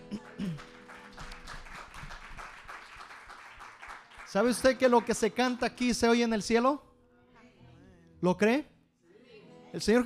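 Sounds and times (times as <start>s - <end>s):
audience applause: 0.0s - 5.2s
speech: 4.3s - 6.9s, 8.2s - 8.7s, 9.7s - 10.0s.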